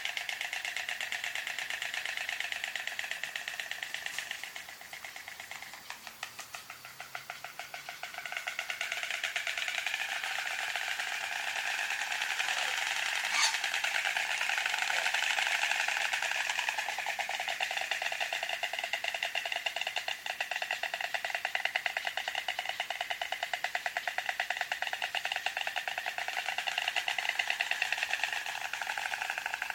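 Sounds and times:
white stork: 0:00.0 - 0:29.7.

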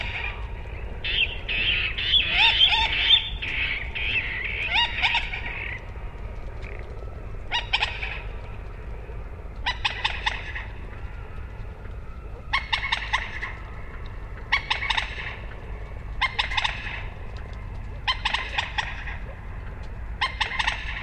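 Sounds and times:
moorhen calling: 0:00.0 - 0:11.5, 0:12.2 - 0:21.0.

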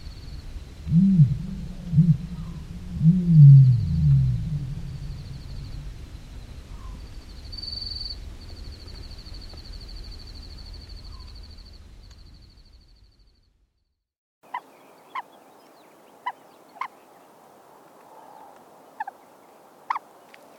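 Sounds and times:
ostrich call: 0:00.9 - 0:06.1.

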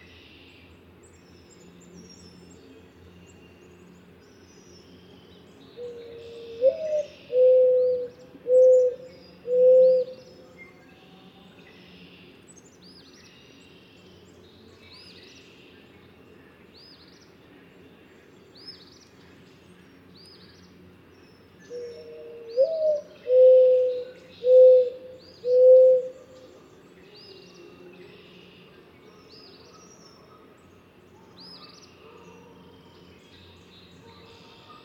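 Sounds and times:
mourning dove cooing: 0:05.8 - 0:10.5, 0:21.7 - 0:26.5.

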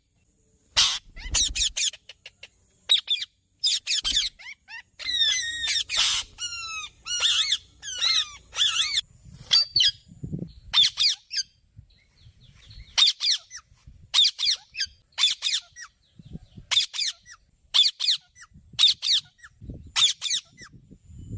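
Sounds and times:
parrot: 0:00.7 - 0:10.0, 0:13.0 - 0:16.0, 0:16.6 - 0:20.7.

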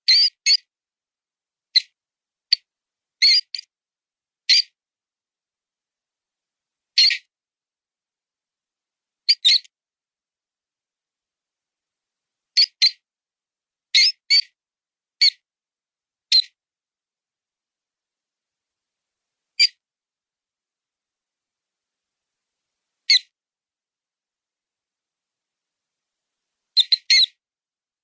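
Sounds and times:
mouse sound: 0:00.0 - 0:00.7, 0:01.7 - 0:03.7, 0:04.5 - 0:04.8, 0:07.0 - 0:07.3, 0:09.3 - 0:09.7, 0:12.6 - 0:13.0, 0:13.9 - 0:14.6, 0:15.2 - 0:15.4, 0:16.3 - 0:16.6, 0:19.6 - 0:19.8, 0:23.1 - 0:23.4, 0:26.8 - 0:27.4.

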